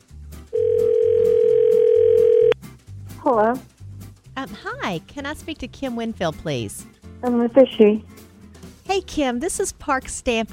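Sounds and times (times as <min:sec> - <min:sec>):
telephone dial tone while calling: 0:00.6 - 0:02.6
speech: 0:03.3 - 0:03.7, 0:04.4 - 0:08.1, 0:08.9 - 0:10.5.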